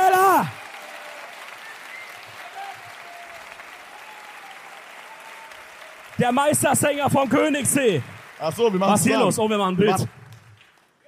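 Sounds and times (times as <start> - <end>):
audience applause: 0.0 - 11.0
speech: 6.2 - 10.2.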